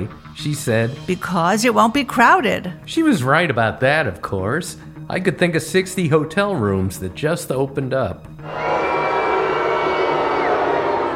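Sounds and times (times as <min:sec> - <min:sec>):
speech: 0:00.0 - 0:08.6
crowd booing sound effect: 0:08.4 - 0:11.1.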